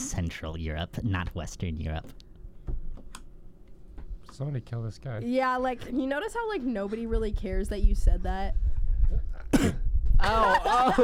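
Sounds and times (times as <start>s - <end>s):
speech: 0.2s - 2.2s, 4.3s - 9.6s, 10.2s - 11.0s
wet cough thick with mucus: 9.5s - 9.9s
laughter: 10.2s - 11.0s.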